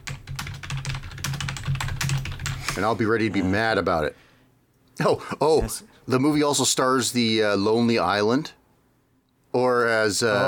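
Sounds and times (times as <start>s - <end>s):
typing on a computer keyboard: 0.0s - 2.7s
speech: 2.8s - 4.3s, 5.0s - 8.6s, 9.5s - 10.4s.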